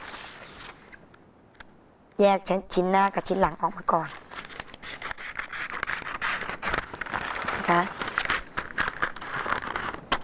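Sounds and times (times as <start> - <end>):
fabric rustling: 0.0 - 1.0, 4.0 - 10.2
speech: 2.2 - 4.3, 7.7 - 8.0.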